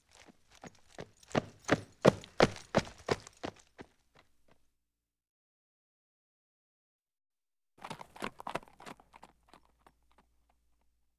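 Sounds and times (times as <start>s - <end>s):
horse trotting on dirt: 0.0s - 4.6s, 7.8s - 10.6s.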